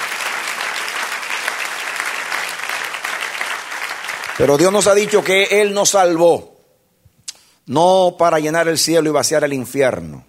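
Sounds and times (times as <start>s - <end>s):
audience applause: 0.0s - 5.7s
speech: 4.4s - 6.5s, 7.7s - 10.2s.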